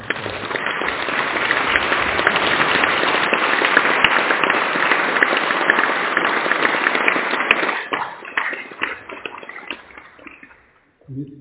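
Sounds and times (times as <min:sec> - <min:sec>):
audience applause: 0:00.0 - 0:10.5.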